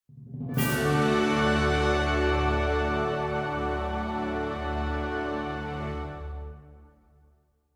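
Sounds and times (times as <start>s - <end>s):
fanfare: 0.6s - 6.7s.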